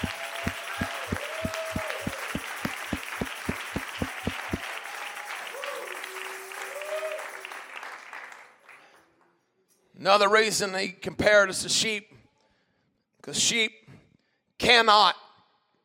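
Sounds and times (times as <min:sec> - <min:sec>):
audience clapping hands: 0:00.0 - 0:08.9
speech: 0:10.0 - 0:12.2, 0:13.3 - 0:13.8, 0:14.6 - 0:15.2.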